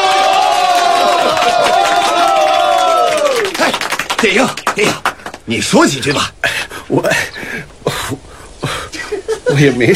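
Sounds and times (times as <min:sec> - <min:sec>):
crowd of villagers applauding and cheering: 0:00.0 - 0:05.4
laughter: 0:00.8 - 0:02.0, 0:07.9 - 0:09.9
speech: 0:04.2 - 0:07.7, 0:09.5 - 0:09.9.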